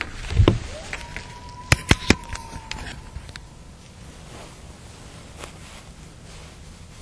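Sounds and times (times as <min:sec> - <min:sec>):
howling: 0:00.4 - 0:04.0.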